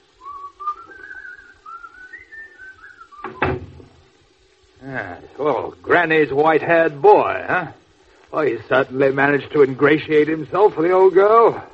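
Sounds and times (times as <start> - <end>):
person whistling a wavering tune: 0.2 - 3.6
door shutting thud: 3.2 - 4.0
speech: 4.8 - 11.7.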